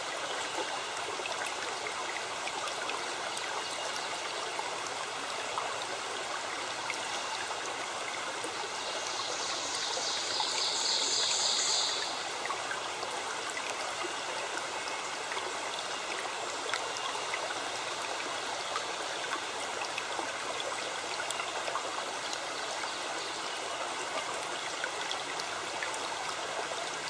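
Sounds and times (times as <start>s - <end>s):
stream flowing: 0.0s - 27.0s.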